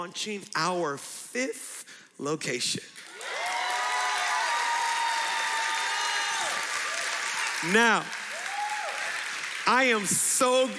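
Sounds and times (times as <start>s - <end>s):
speech: 0.0s - 3.1s, 7.6s - 8.2s, 9.6s - 10.7s
audience clapping: 2.9s - 10.7s
audience screaming: 3.2s - 9.5s.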